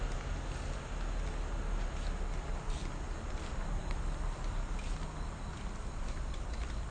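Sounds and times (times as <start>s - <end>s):
shoe soles scuffing on asphalt road: 0.2s - 3.6s, 4.8s - 6.7s.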